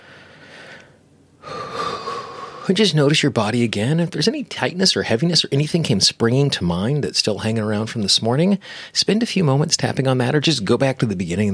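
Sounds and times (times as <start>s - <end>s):
slow deep breath during a guided tapping exercise: 0.0s - 2.7s, 8.6s - 9.0s
speech: 2.7s - 11.5s.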